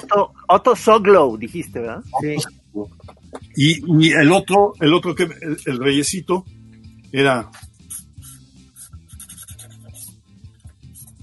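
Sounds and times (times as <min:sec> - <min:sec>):
speech: 0:00.0 - 0:07.6
marker pen drawing on paper: 0:07.6 - 0:11.2.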